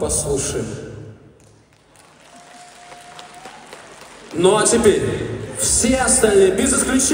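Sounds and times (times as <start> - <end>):
speech: 0.0 - 0.9, 4.4 - 7.1
small scattering of people clapping: 1.4 - 5.9.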